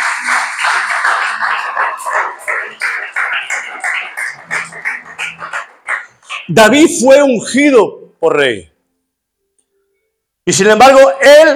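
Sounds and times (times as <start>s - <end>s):
congregation clapping in a church: 0.0s - 7.0s
speech: 6.6s - 8.7s, 10.4s - 11.5s.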